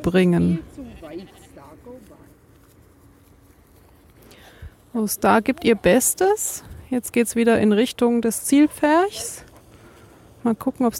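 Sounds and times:
speech: 0:00.0 - 0:02.0, 0:05.0 - 0:09.4, 0:10.4 - 0:10.9
sheep on a meadow bleating while herded into a pen: 0:00.4 - 0:01.9.

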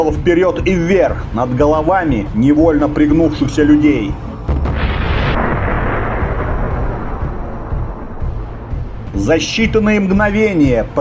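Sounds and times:
speech: 0:00.0 - 0:04.3, 0:09.2 - 0:11.0
fiery explosion against rocks: 0:04.4 - 0:09.2.

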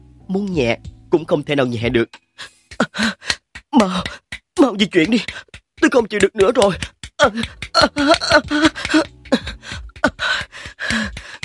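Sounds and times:
speech: 0:00.3 - 0:02.5, 0:03.8 - 0:09.5
heavy panting: 0:02.4 - 0:04.3, 0:06.8 - 0:11.4.

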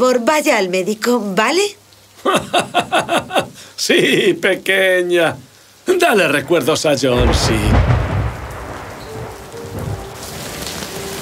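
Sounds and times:
speech: 0:00.0 - 0:08.0
hailstorm pelting down on a city at night: 0:00.1 - 0:11.2
laughter: 0:02.2 - 0:04.2
deep rumble of thunder: 0:06.0 - 0:11.2.

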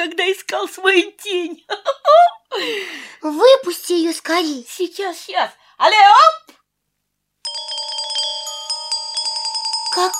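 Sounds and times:
speech: 0:00.4 - 0:06.5, 0:10.0 - 0:10.1
bright tinkling chime of a fairy ringing: 0:07.4 - 0:10.1.

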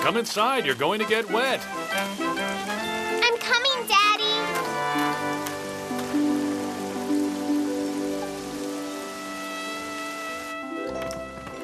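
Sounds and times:
rain falling: 0:00.0 - 0:11.6
speech: 0:00.1 - 0:02.7.

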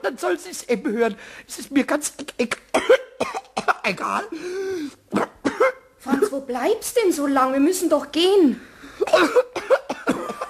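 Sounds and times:
speech: 0:00.0 - 0:05.3, 0:06.0 - 0:09.5
person coughing after choking: 0:02.7 - 0:04.4, 0:05.1 - 0:06.5, 0:09.0 - 0:10.4.

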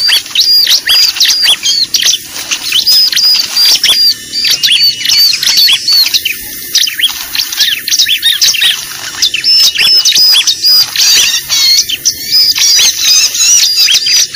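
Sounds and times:
bar-winged prinia high squeaky notes: 0:00.0 - 0:14.3.

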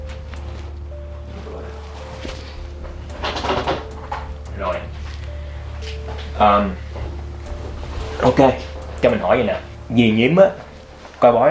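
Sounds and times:
low electrical hum: 0:00.0 - 0:11.4
door pushed shut: 0:02.2 - 0:09.8
speech: 0:06.4 - 0:06.9, 0:08.2 - 0:10.6, 0:11.2 - 0:11.4.

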